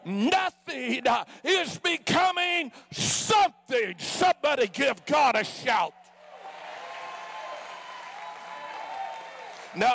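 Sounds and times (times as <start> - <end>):
speech: 0.0 - 6.0, 9.7 - 9.9
light polite applause, golf clap: 6.2 - 9.9.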